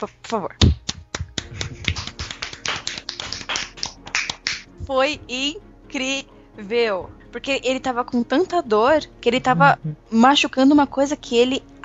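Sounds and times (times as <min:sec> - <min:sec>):
speech: 0:00.0 - 0:00.8, 0:04.8 - 0:11.7
enthusiastic hand clapping: 0:00.0 - 0:04.7.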